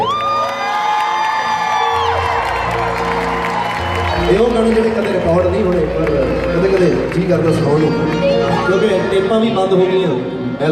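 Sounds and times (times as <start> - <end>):
audience cheering and whooping at a live song performance: 0.0 - 6.8
audience clapping at a live song performance: 0.0 - 9.3
speech: 4.3 - 10.7.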